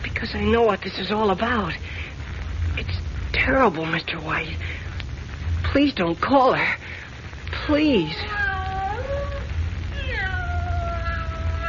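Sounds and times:
low steady rumble: 0.0s - 11.6s
speech: 0.2s - 2.0s, 2.8s - 4.8s, 5.7s - 7.0s, 7.7s - 8.4s
cat meowing plaintively: 7.9s - 11.6s.

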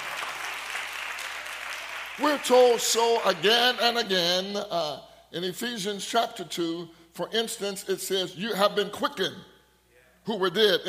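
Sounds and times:
audience clapping hands: 0.0s - 3.8s
speech: 2.2s - 9.5s, 10.2s - 10.8s.

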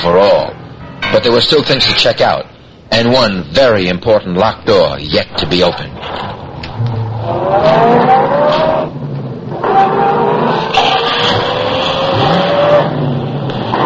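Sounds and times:
speech: 1.2s - 6.4s, 7.5s - 8.2s
car accelerating hard during a chase: 6.4s - 13.8s.

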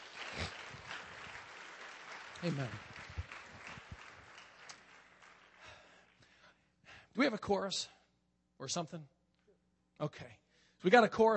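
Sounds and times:
audience applauding: 0.0s - 6.3s
speech: 2.4s - 2.9s, 7.2s - 8.0s, 8.6s - 9.2s, 10.0s - 11.3s.

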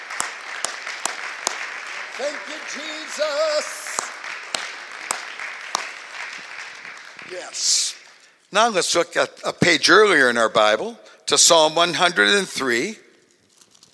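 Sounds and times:
crowd clapping: 0.0s - 8.4s
speech: 2.2s - 4.0s, 7.3s - 13.0s.

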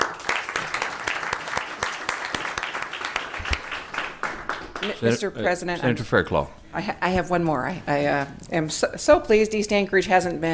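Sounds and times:
applause in a state Senate chamber: 0.0s - 5.3s
speech: 4.8s - 10.5s.

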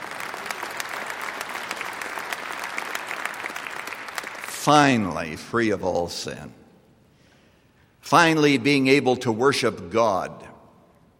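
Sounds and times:
audience applause: 0.0s - 4.5s
speech: 4.6s - 6.6s, 8.1s - 10.5s.

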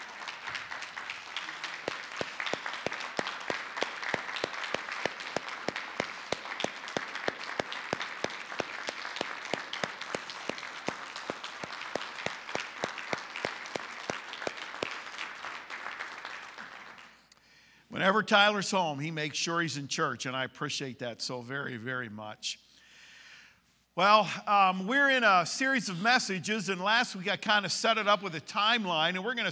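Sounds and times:
church congregation applauding a Navy serviceman: 0.0s - 17.6s
speech: 18.0s - 22.7s, 24.0s - 29.5s.

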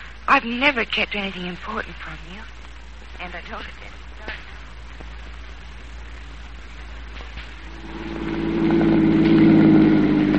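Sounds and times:
speech: 0.3s - 2.6s, 3.2s - 4.4s
car engine running during an afternoon drive in the country: 6.1s - 10.3s.

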